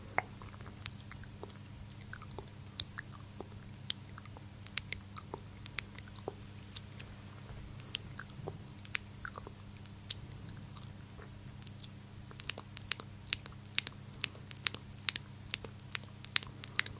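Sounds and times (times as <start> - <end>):
wet mouth sounds: 0.0 - 7.2, 7.8 - 16.9.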